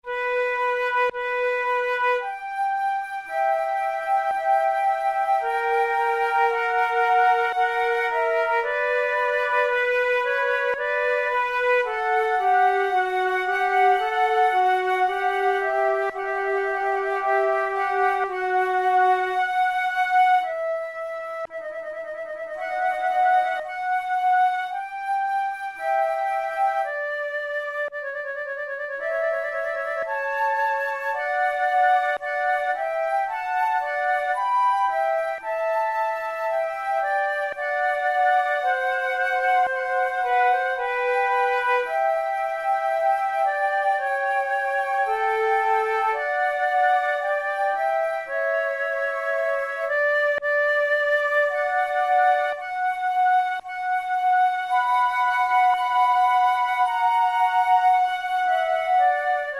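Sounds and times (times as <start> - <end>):
slow largo flute tunes: 0.0 - 59.5.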